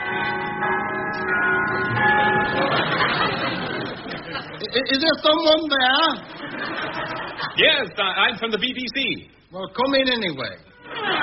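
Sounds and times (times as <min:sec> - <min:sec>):
doorbell ringing: 0:00.0 - 0:03.9
laughter: 0:02.3 - 0:05.0, 0:06.2 - 0:07.9, 0:10.9 - 0:11.2
speech: 0:04.7 - 0:11.2.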